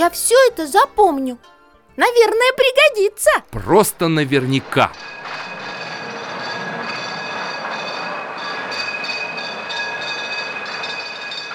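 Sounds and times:
speech: 0.0 - 5.2
tram rolling on rails: 3.5 - 11.5.

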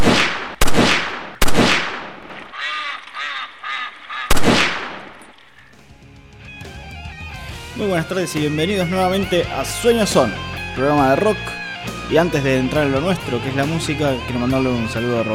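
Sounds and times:
loud sharp gunshot-like blasts: 0.0 - 2.5, 4.3 - 5.2
ducks quacking: 2.2 - 5.8
speech: 7.8 - 15.3.

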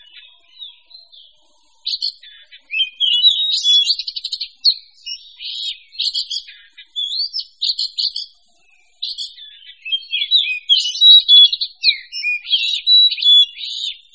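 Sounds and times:
several songbirds chattering and singing together: 0.0 - 14.1.

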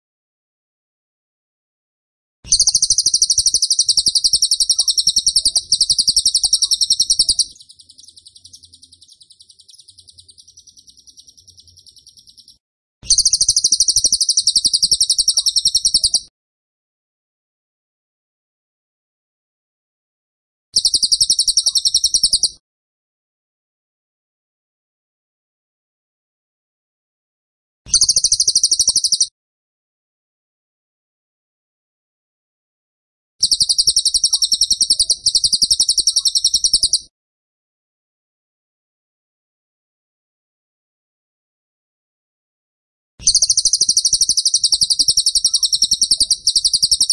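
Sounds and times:
bird chirping: 2.5 - 16.3, 20.8 - 22.6, 27.9 - 29.3, 33.4 - 37.1, 43.2 - 47.1.

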